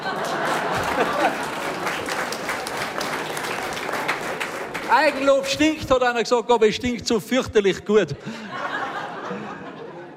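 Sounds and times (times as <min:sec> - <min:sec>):
laughter: 0:00.0 - 0:02.2, 0:08.0 - 0:10.1
audience clapping: 0:00.0 - 0:06.0
speech: 0:05.0 - 0:08.5.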